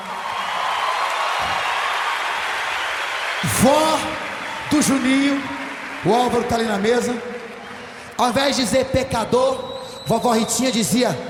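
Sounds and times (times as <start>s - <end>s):
gospel concert audience applause honouring an elderly woman: 0.0s - 8.7s
speech: 3.6s - 3.8s, 4.8s - 7.3s, 8.2s - 11.2s.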